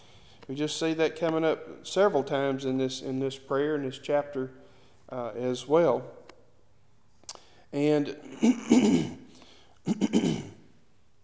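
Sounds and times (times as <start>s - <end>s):
speech: 0.5s - 6.2s, 7.7s - 9.2s, 9.8s - 10.5s
speaker clearing their throat: 8.2s - 9.2s, 9.9s - 10.6s.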